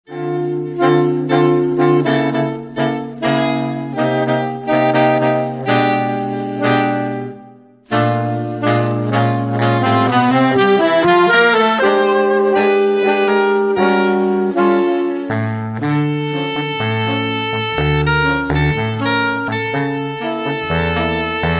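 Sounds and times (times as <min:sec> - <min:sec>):
saxophone: 0:00.0 - 0:21.5.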